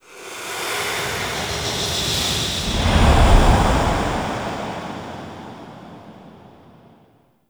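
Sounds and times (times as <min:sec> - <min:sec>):
turn whoosh: 0:01.9 - 0:04.9.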